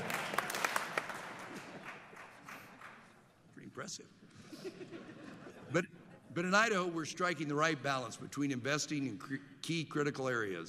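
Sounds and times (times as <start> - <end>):
audience clapping: 0.0 - 3.2
speech: 3.8 - 10.6
laughter: 4.4 - 6.3.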